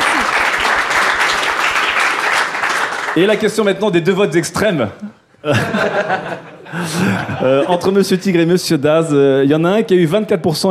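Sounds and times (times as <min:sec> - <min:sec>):
audience applause: 0:00.0 - 0:03.6
speech: 0:03.2 - 0:10.6
laughter: 0:05.4 - 0:08.0.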